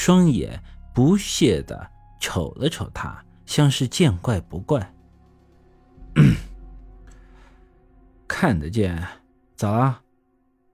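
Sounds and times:
speech: 0.0 - 5.0, 8.3 - 10.0
gruff cough: 6.0 - 6.6.

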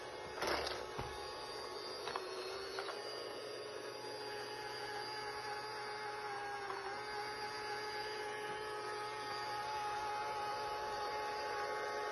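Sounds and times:
one-yuan toy robot vacuum cleaner from Pinduoduo running over a dirty floor: 0.0 - 12.1.

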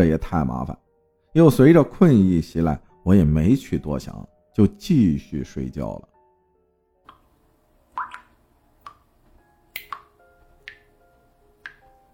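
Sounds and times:
speech: 0.0 - 6.1
water dripping from a faucet: 7.0 - 9.1, 9.7 - 11.0, 11.6 - 12.0.

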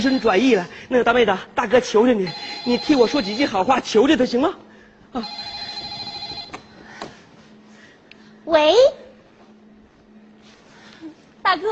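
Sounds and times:
telephone ringing with a high electronic tone: 0.0 - 0.6, 2.3 - 4.4, 5.2 - 6.9
speech: 0.0 - 5.5, 8.5 - 9.0, 11.4 - 11.7
low hum: 0.0 - 11.7.

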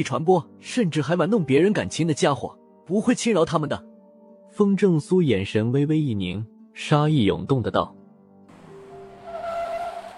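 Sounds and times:
speech: 0.0 - 3.9, 4.6 - 8.0
car braking hard with tires screeching: 8.5 - 10.1.

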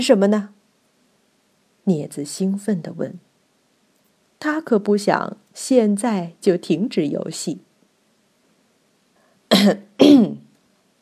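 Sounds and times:
speech: 0.0 - 0.6, 1.9 - 3.3, 4.4 - 7.7, 9.6 - 10.4
person coughing awkwardly: 9.5 - 10.4.

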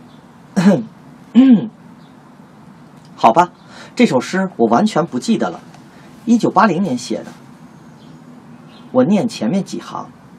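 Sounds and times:
speech: 0.6 - 1.8, 3.2 - 5.7, 6.3 - 7.4, 8.9 - 10.2
man clearing his throat: 1.4 - 1.7.

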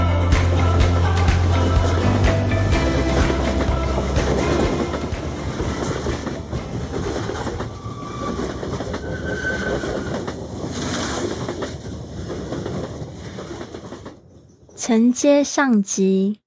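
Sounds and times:
train running on rails: 0.0 - 15.0
train wheel squeals: 4.5 - 11.5
speech: 14.9 - 16.4.

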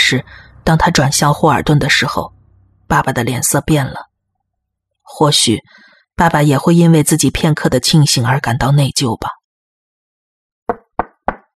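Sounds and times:
speech: 0.1 - 4.1, 5.1 - 9.4
firm knocking on a door: 10.7 - 11.5.

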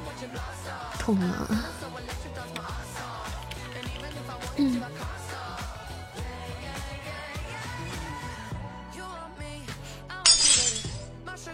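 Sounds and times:
continuous music: 0.0 - 11.5
speech: 1.1 - 1.9, 4.6 - 5.0
glass shattering sound effect: 10.3 - 11.1.

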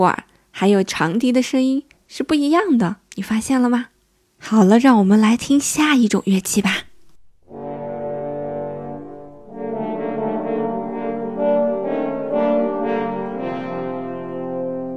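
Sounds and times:
speech: 0.0 - 6.9
horns playing a menacing theme: 7.4 - 14.9.

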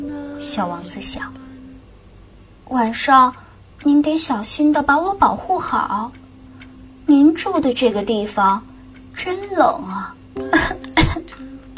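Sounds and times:
speech: 0.4 - 1.4, 2.7 - 6.2, 7.1 - 11.5
person coughing: 10.6 - 11.2.

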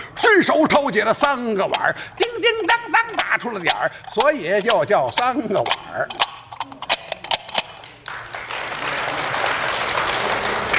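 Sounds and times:
speech: 0.3 - 6.3
audience applause: 7.8 - 10.7.

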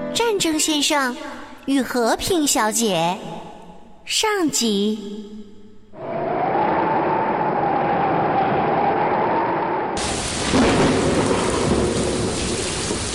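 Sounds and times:
speech: 0.2 - 3.5, 4.1 - 5.4
rolling thunder: 6.0 - 13.1
pouring rain: 10.0 - 13.1.

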